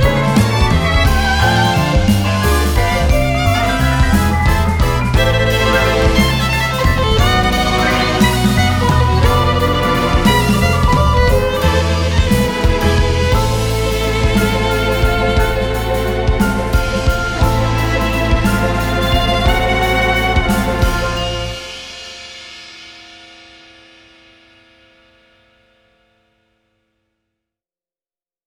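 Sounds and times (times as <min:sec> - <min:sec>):
violin: 0:00.0 - 0:22.0.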